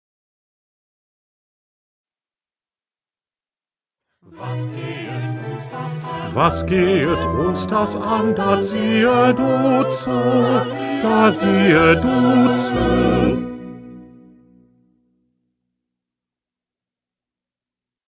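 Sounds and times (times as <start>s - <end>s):
bass: 6.3s - 14.4s.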